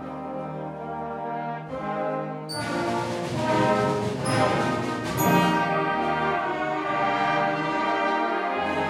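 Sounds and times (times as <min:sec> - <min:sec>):
band playing: 0:00.2 - 0:08.8.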